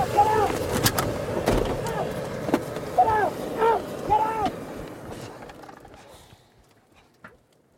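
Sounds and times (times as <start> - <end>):
Turkish police tear gas: 0.0 - 5.4.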